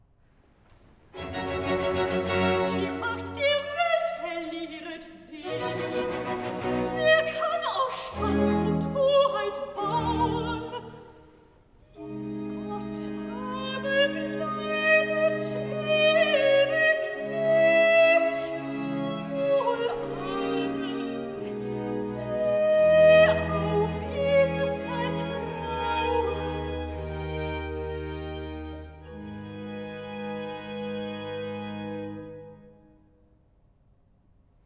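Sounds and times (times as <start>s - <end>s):
soprano singing a cantata recitative: 1.2s - 27.5s.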